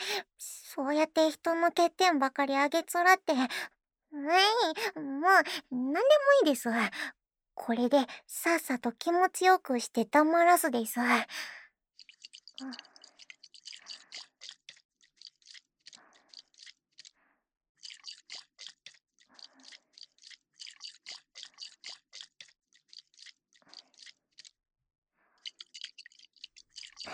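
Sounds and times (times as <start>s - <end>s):
speech: 0.2s - 11.6s, 12.6s - 12.9s
baby oil squishing: 12.0s - 17.1s, 17.8s - 24.6s, 25.4s - 27.1s.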